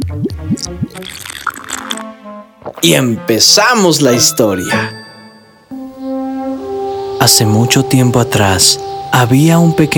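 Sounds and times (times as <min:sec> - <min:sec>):
gulp and liquid gurgle: 0:00.0 - 0:02.8
speech: 0:00.1 - 0:01.5, 0:02.2 - 0:05.0, 0:07.2 - 0:09.9
person sipping warm honey water with lemon balm: 0:00.9 - 0:02.0.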